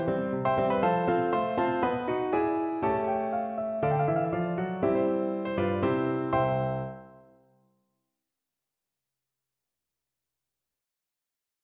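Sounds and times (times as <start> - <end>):
piano: 0.0 - 7.6.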